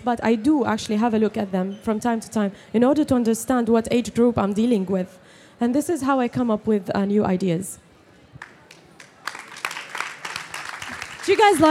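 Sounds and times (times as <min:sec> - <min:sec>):
speech: 0:00.0 - 0:07.8, 0:11.3 - 0:11.6
audience clapping: 0:08.4 - 0:11.6.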